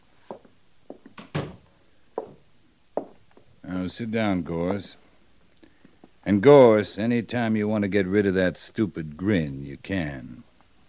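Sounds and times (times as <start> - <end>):
soft knocks and bumps: 0.3 - 3.5
door shutting: 1.2 - 1.6
speech: 3.8 - 5.0, 6.3 - 10.5.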